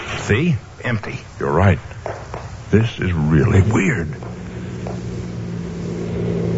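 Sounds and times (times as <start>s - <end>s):
speech: 0.3s - 1.9s, 2.7s - 4.4s
car approaching: 3.1s - 6.5s.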